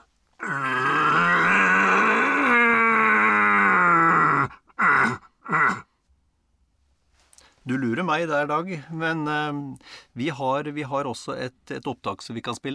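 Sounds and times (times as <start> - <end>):
person imitating a red deer stag rut call: 0.4 - 5.8
speech: 7.7 - 12.7.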